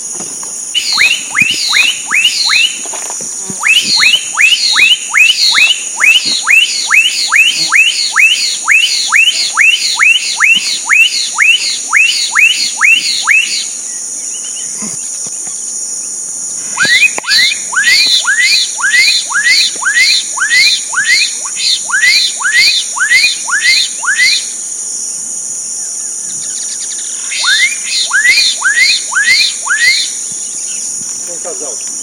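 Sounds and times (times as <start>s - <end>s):
droning insects: 0.0s - 32.0s
black-capped donacobius upswept whistles: 0.8s - 2.8s, 3.6s - 13.7s, 16.8s - 24.5s, 27.3s - 30.2s.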